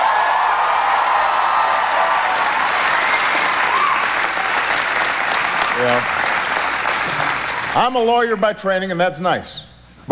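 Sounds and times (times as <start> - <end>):
audience applause: 0.0 - 7.8
speech: 5.8 - 6.2, 7.7 - 10.0.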